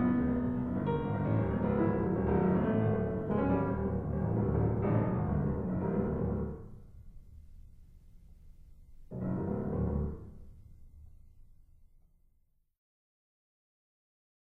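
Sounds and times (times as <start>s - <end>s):
piano: 0.0s - 11.5s.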